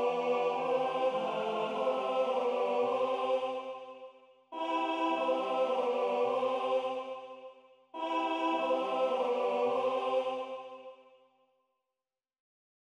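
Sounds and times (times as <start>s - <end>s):
tenor singing: 0.0s - 4.0s, 4.6s - 7.3s, 8.0s - 10.8s.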